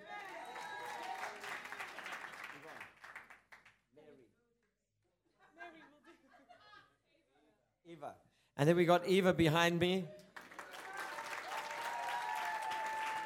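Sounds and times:
audience applause: 0:00.0 - 0:03.6, 0:10.3 - 0:13.2
laughter: 0:05.3 - 0:07.0
speech: 0:07.9 - 0:10.2.

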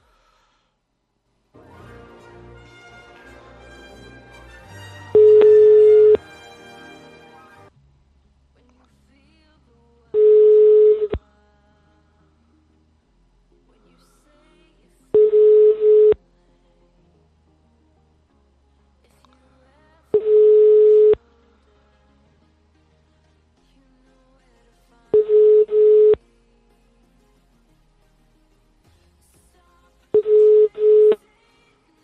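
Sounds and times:
telephone ringback tones of an unanswered call: 0:05.2 - 0:06.2, 0:10.2 - 0:11.2, 0:15.2 - 0:16.2, 0:20.2 - 0:21.2, 0:25.2 - 0:26.2, 0:30.2 - 0:31.2.

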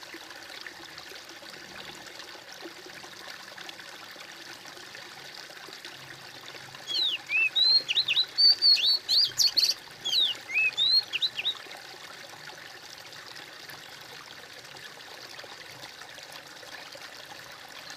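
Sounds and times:
bird singing high twisting whistled chirps: 0:06.9 - 0:11.6.

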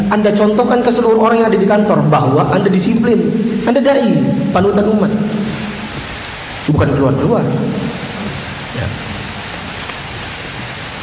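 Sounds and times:
speech: 0:00.1 - 0:05.4, 0:06.7 - 0:07.8
rain: 0:03.5 - 0:11.0.

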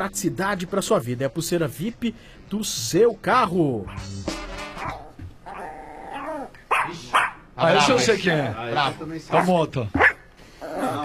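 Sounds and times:
speech: 0:00.0 - 0:05.0, 0:06.9 - 0:10.1
Yorkshire terrier barking and growling: 0:04.8 - 0:07.5, 0:09.4 - 0:11.0.

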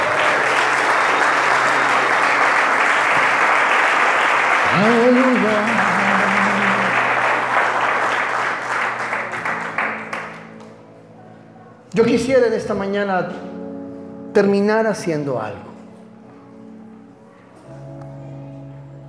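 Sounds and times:
church congregation applauding at the close of a sermon: 0:00.0 - 0:11.0
speech: 0:04.8 - 0:05.8, 0:12.0 - 0:13.5, 0:14.4 - 0:15.7.

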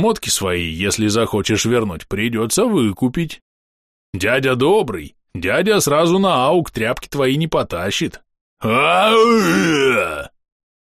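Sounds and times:
speech: 0:00.0 - 0:03.5, 0:04.1 - 0:10.3
ogre battle roar: 0:08.6 - 0:10.3.

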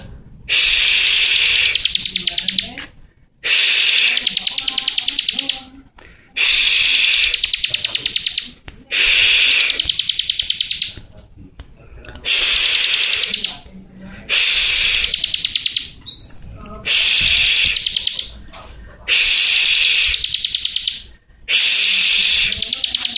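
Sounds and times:
bar-winged prinia hissing burst and fast trill of high notes: 0:00.5 - 0:02.7, 0:03.5 - 0:05.5, 0:06.4 - 0:10.9, 0:12.3 - 0:13.6, 0:14.3 - 0:15.9, 0:16.9 - 0:18.3, 0:19.1 - 0:20.5, 0:21.5 - 0:23.1.

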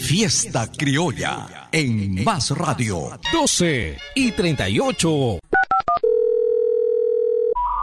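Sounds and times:
speech: 0:00.1 - 0:05.5
long steady telephone tone of a failed call: 0:05.9 - 0:07.8.

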